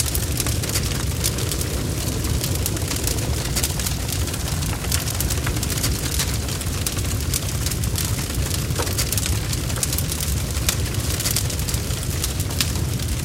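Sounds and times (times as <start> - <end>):
large heavy wood fire crackling inside a barn: 0.0 - 13.2.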